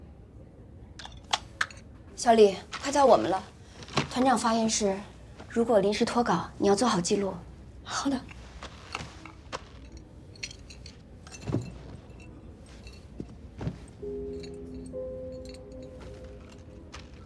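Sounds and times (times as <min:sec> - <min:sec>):
house door keys jangling: 0:01.0 - 0:01.8, 0:08.9 - 0:17.2
speech: 0:02.2 - 0:03.5, 0:04.2 - 0:08.3.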